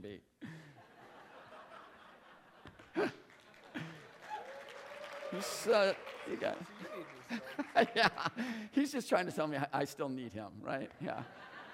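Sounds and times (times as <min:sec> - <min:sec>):
laughter: 0:00.5 - 0:04.2, 0:05.4 - 0:08.7, 0:11.0 - 0:11.7
audience cheering and applause: 0:02.7 - 0:08.6
speech: 0:05.4 - 0:11.5.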